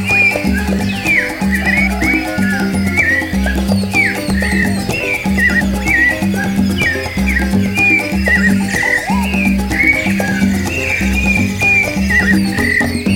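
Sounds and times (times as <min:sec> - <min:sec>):
rooster in a rainforest: 0:00.1 - 0:12.9.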